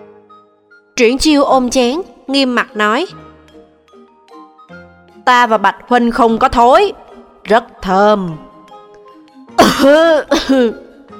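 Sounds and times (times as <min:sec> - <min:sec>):
speech: 0:01.0 - 0:03.2, 0:05.3 - 0:08.5, 0:09.8 - 0:10.8
choking cough: 0:09.6 - 0:10.9.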